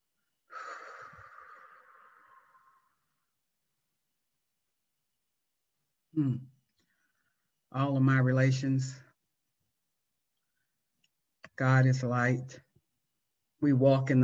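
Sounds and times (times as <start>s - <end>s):
deep inhale during guided breathing: 0.5s - 3.2s
exhale during guided breathing: 0.5s - 3.3s
speech: 6.2s - 6.5s, 7.7s - 9.0s, 11.6s - 12.6s, 13.6s - 14.2s.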